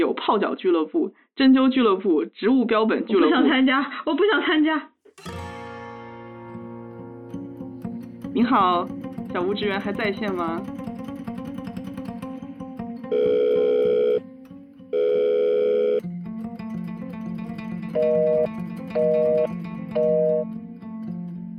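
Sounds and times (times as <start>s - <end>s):
speech: 0.0s - 5.4s, 8.4s - 10.8s
unanswered telephone call ringback tones: 13.1s - 14.2s, 15.0s - 16.0s, 18.0s - 20.4s.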